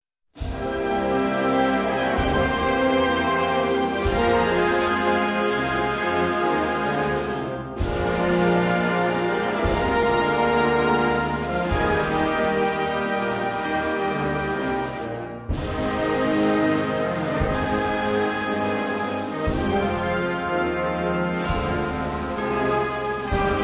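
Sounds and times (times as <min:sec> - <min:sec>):
band playing a czardas in C minor: 0:00.4 - 0:23.6.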